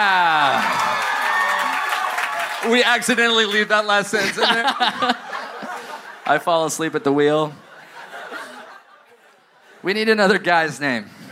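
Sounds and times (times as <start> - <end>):
crowd applause and cheering: 0.0 - 4.0
speech: 2.6 - 5.3, 6.3 - 7.6, 9.8 - 11.2
laughter: 4.0 - 9.9.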